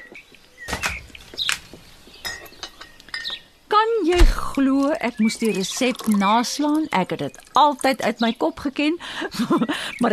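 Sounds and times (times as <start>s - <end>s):
speech: 4.1s - 10.1s
pouring ginger beer into glasses: 4.6s - 8.0s
laughter: 9.2s - 10.0s.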